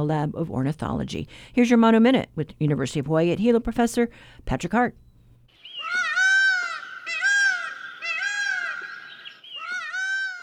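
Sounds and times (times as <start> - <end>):
speech: 0.0 - 5.0
male Indian peafowl calling: 5.5 - 10.4.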